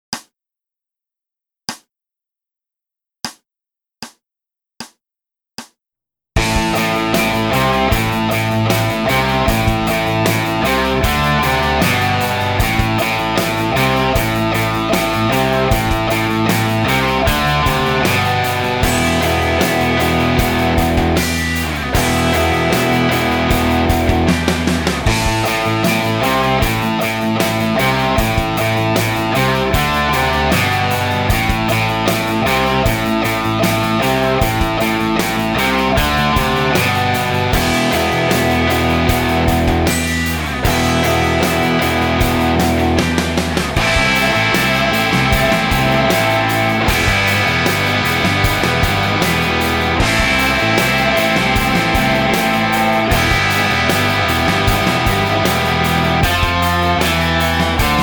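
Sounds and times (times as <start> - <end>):
backing track: 6.4 - 58.0.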